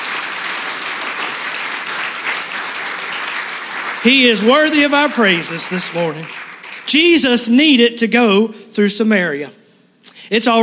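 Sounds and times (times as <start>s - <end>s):
large audience clapping hands in praise: 0.0s - 7.3s
speech: 4.0s - 9.6s, 10.3s - 10.6s.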